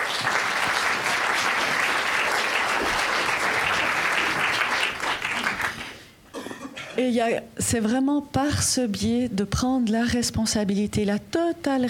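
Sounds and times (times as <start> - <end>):
audience applause: 0.0 - 6.1
speech: 7.0 - 11.8.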